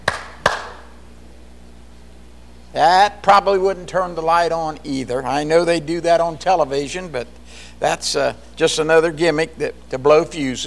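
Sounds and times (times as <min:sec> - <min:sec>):
hands clapping: 0:00.0 - 0:00.9
speech: 0:02.7 - 0:10.6.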